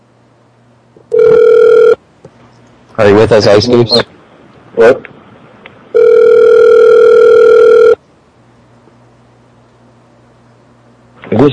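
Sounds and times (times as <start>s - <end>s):
speech: 1.0s - 1.5s, 3.0s - 4.1s, 4.8s - 5.1s
ringback tone from an outgoing phone call: 1.1s - 2.0s, 6.0s - 8.0s.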